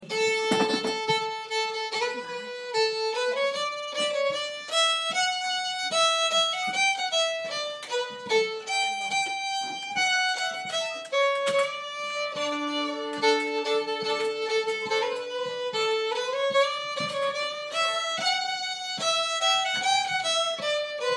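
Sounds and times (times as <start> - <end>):
walking tune in D minor: 0.0 - 21.1.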